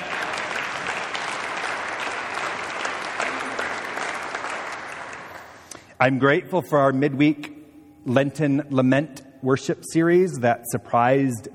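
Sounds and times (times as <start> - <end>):
audience applause: 0.0 - 5.6
speech: 6.0 - 11.5.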